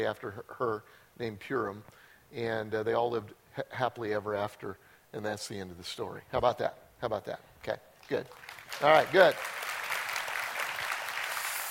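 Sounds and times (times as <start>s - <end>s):
speech: 0.0s - 9.6s
crowd applauding: 8.3s - 11.7s.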